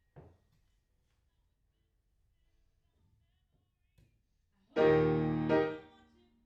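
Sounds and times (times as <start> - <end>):
piano in a room: 4.8 - 6.0.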